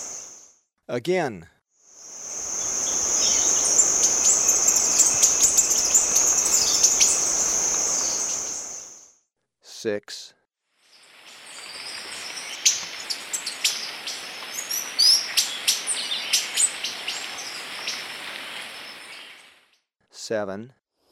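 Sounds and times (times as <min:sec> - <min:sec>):
high insect hum: 0:00.0 - 0:00.5, 0:01.9 - 0:09.1, 0:10.9 - 0:19.5
speech: 0:00.9 - 0:01.6, 0:09.8 - 0:10.4, 0:20.3 - 0:20.8
White-winged tanager calling: 0:02.2 - 0:09.0, 0:11.5 - 0:17.9.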